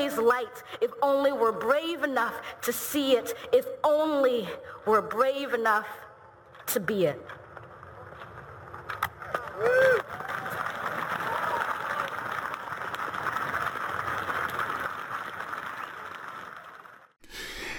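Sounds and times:
speech: 0.2s - 6.0s, 6.7s - 7.4s, 9.6s - 10.4s
sparse applause from a small crowd: 7.9s - 17.2s.

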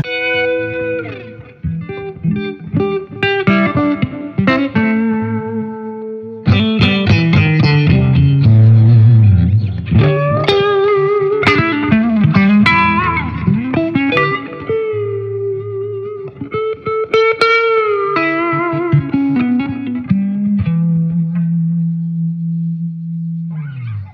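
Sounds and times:
electric guitar through clean Marshall amplifier: 0.0s - 24.1s.

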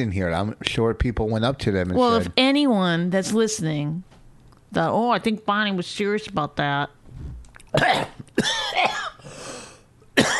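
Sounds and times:
speech: 0.0s - 4.1s, 4.7s - 7.0s, 7.7s - 8.1s
person coughing after choking on saliva: 7.7s - 9.3s, 10.2s - 10.3s.

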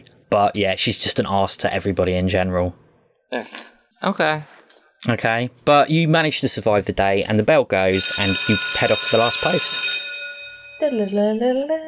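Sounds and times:
speech: 0.3s - 9.9s, 10.8s - 11.8s
steady held tone: 7.9s - 11.8s.

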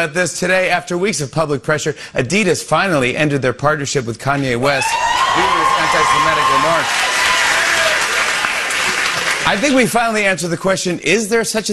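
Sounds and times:
speech: 0.0s - 7.1s, 9.5s - 11.7s
studio audience applauding: 4.8s - 9.9s.

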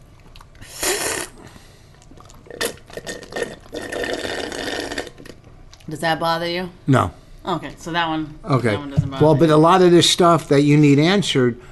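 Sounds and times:
slurping a drink: 0.6s - 1.4s, 2.0s - 5.4s
speech: 5.9s - 11.7s.

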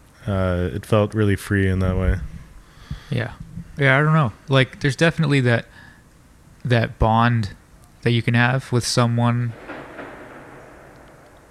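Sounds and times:
speech: 0.2s - 2.3s, 3.1s - 5.8s, 6.6s - 9.6s
distant gunfire: 9.5s - 11.4s.

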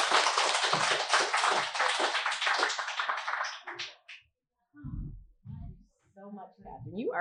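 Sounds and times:
audience applause: 0.0s - 4.2s
low thump: 4.8s - 5.8s
speech: 6.8s - 7.1s.

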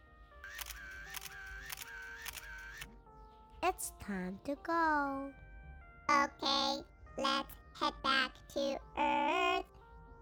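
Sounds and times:
camera shutter clicks as astronauts take a selfie on the Moon: 0.5s - 2.9s
soft steady musical tone: 2.9s - 10.1s
speech: 3.7s - 5.4s, 6.2s - 9.5s.

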